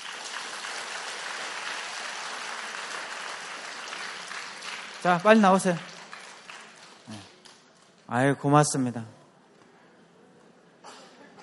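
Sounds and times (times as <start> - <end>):
audience clapping: 0.0 - 8.0
speech: 5.0 - 5.9, 8.1 - 9.2.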